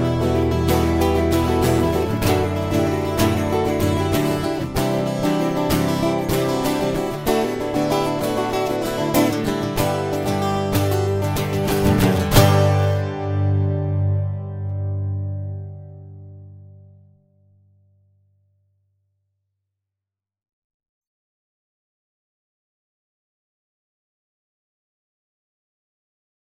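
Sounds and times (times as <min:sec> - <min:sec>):
open chord jam: 0:00.0 - 0:17.9.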